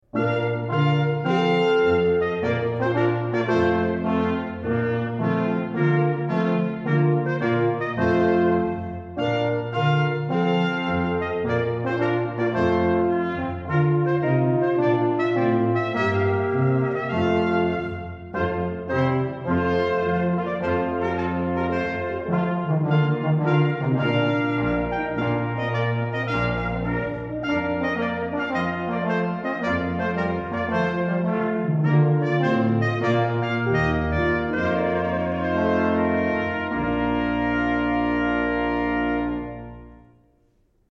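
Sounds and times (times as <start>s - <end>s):
trumpet piece: 0.0s - 40.8s.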